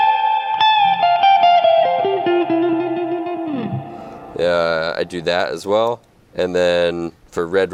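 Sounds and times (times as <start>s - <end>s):
electric guitar played through a spring reverb: 0.0s - 5.2s
speech: 4.5s - 7.7s.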